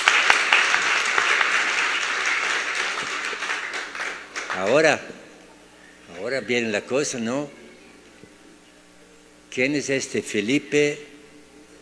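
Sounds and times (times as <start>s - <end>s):
audience applause: 0.0s - 5.3s
speech: 4.6s - 5.2s, 6.2s - 7.6s, 9.6s - 11.1s.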